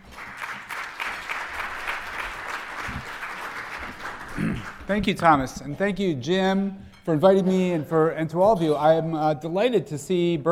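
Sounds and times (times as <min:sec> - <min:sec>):
audience applause welcoming a professor at a Berkeley and Stanford event: 0:00.0 - 0:05.2
speech: 0:04.9 - 0:10.4.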